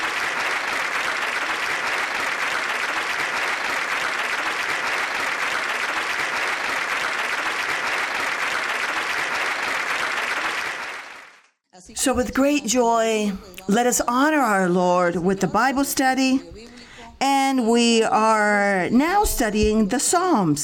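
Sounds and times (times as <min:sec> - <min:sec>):
audience applause: 0:00.0 - 0:11.5
speech: 0:12.0 - 0:16.6, 0:17.6 - 0:20.6.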